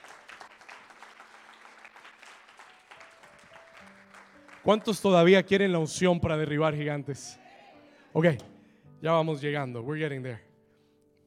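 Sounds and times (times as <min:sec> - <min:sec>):
audience applause: 0:00.0 - 0:05.2
speech: 0:04.6 - 0:07.4, 0:08.2 - 0:10.5.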